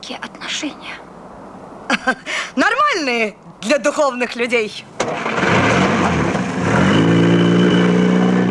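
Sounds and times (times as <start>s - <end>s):
speech: 0.1s - 1.1s, 2.0s - 5.5s
Pobeda taxi car driving away: 5.0s - 8.4s.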